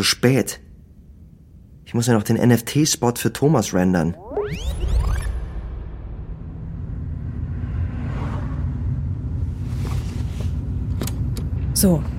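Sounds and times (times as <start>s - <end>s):
speech: 0.0s - 0.6s, 1.9s - 4.9s, 11.8s - 12.1s
car driving: 4.6s - 12.1s.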